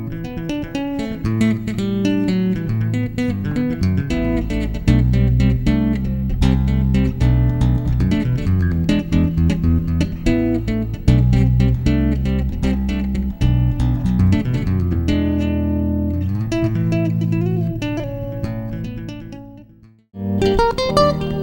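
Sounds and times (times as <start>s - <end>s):
solo contemporary bass: 0.0s - 21.4s.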